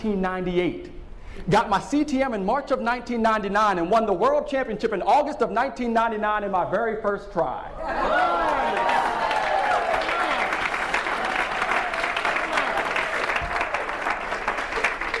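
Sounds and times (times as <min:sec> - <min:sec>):
speech: 0:00.0 - 0:08.9
audience clapping: 0:08.1 - 0:15.1.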